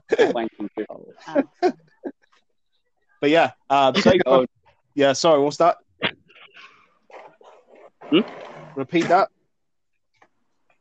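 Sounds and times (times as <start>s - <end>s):
laughter: 0.0s - 2.2s, 3.8s - 4.5s
speech: 0.1s - 1.5s, 3.2s - 5.8s, 8.1s - 9.4s
cough: 9.0s - 9.3s.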